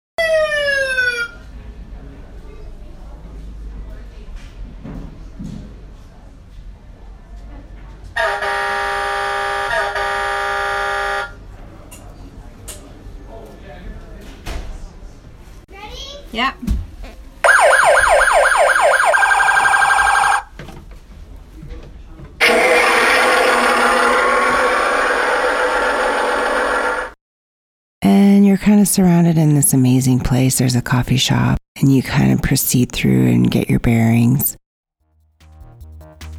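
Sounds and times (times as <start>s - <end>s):
giant fire truck engine number 23 siren: 0.2s - 1.4s, 8.2s - 11.4s, 17.5s - 20.5s, 22.4s - 27.2s
giant fire truck engine number 23 horn blasts: 8.2s - 11.4s
speech: 28.8s - 34.6s.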